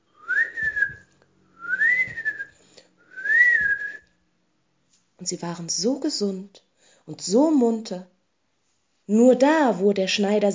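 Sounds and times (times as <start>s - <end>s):
whistling imitating newly hatched bird chicks peeping: 0.1s - 4.1s
speech: 5.2s - 8.1s, 9.1s - 10.5s.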